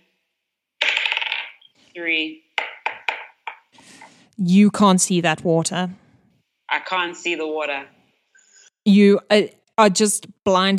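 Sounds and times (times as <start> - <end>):
d20 dice rolling on a table: 0.8 - 1.7, 2.6 - 3.7
speech: 2.0 - 2.5, 4.4 - 6.0, 6.9 - 8.0, 8.8 - 10.7.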